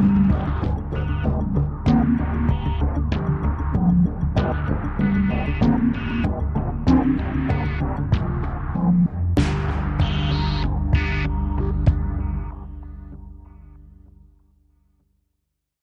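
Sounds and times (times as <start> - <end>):
music loop: 0.0 - 12.4.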